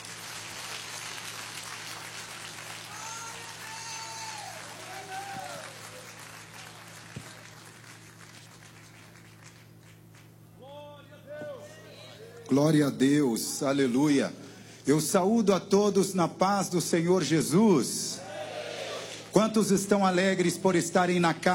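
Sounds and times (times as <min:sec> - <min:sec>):
audience applauding: 0:00.0 - 0:10.8
people cheering and whooping: 0:02.9 - 0:07.5, 0:10.6 - 0:12.5, 0:18.2 - 0:19.3
speech: 0:12.5 - 0:18.0, 0:19.4 - 0:21.5.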